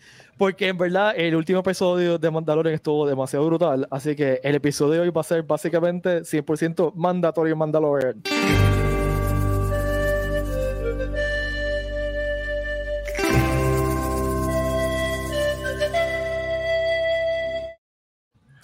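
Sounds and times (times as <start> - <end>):
speech: 0.4 - 8.8
Peruvian-style flute music: 8.3 - 17.8.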